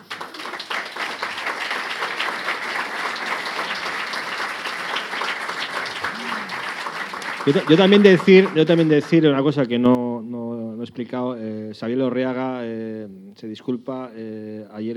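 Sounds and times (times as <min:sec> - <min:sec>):
audience applause: 0:00.0 - 0:09.3
speech: 0:07.4 - 0:10.0, 0:11.0 - 0:14.9.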